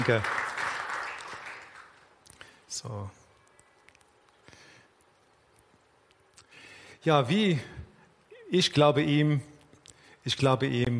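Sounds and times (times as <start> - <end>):
speech: 0.0 - 0.4, 2.8 - 3.2, 7.0 - 7.8, 8.5 - 9.5, 10.2 - 10.9
applause from a group: 0.0 - 2.1.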